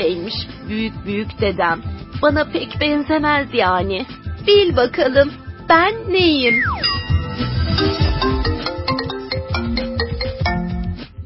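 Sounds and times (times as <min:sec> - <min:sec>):
speech: 0:00.0 - 0:06.8
mobile phone ringtone: 0:06.5 - 0:10.9.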